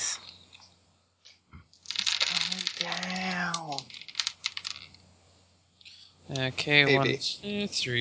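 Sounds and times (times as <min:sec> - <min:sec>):
handful of dice clattering: 0:01.8 - 0:05.0
speech: 0:06.3 - 0:07.9.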